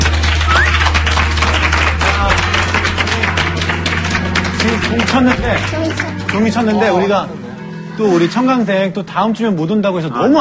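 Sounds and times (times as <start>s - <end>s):
crowd applauding: 0.0s - 7.1s
speech: 4.9s - 7.4s, 8.0s - 10.3s.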